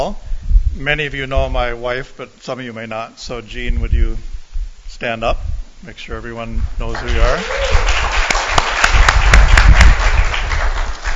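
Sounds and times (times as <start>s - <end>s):
speech: 0.0s - 0.2s, 0.8s - 8.2s
audience clapping: 6.9s - 11.1s.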